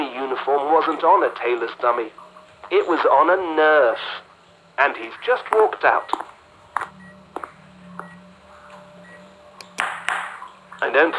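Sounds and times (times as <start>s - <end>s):
heart monitor beeping: 0.0s - 11.0s
low hum: 0.0s - 11.1s
speech: 0.4s - 7.0s, 10.8s - 11.1s.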